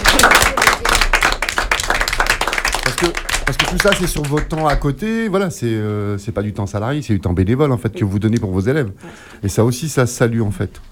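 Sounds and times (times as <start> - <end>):
applause: 0.0 - 5.0
speech: 3.0 - 10.9.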